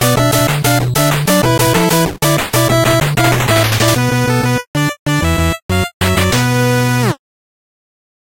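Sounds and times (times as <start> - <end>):
8-bit dance music: 0.0 - 7.2.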